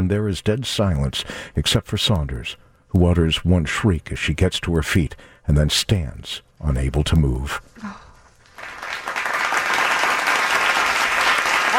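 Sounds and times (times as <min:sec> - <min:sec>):
speech: 0:00.1 - 0:08.0
crowd applause: 0:08.5 - 0:11.7.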